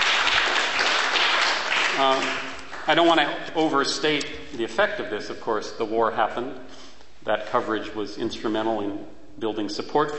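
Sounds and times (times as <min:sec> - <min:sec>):
audience applause at a talk on activism: 0:00.0 - 0:03.2
speech: 0:02.0 - 0:10.1.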